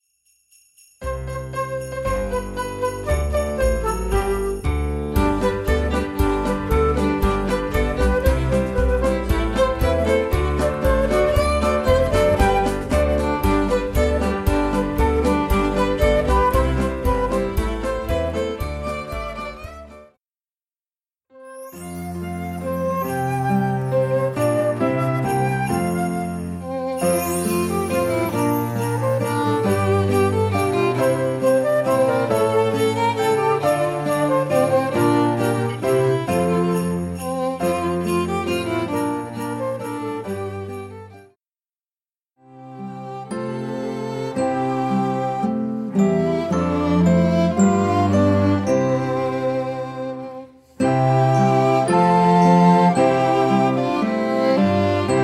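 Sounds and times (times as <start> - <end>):
play-along recorder Christmas music: 1.0 - 20.0, 21.4 - 41.4, 43.3 - 55.2.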